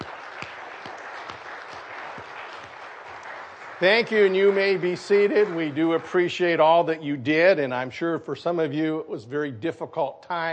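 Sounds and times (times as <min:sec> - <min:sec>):
audience applause: 0:00.0 - 0:06.9
speech: 0:03.8 - 0:10.5.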